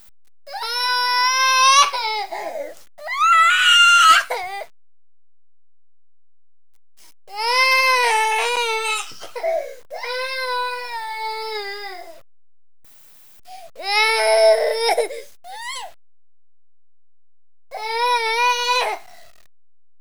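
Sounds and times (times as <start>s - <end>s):
baby crying: 0.5s - 4.7s, 7.3s - 12.2s, 13.8s - 15.9s, 17.7s - 19.2s.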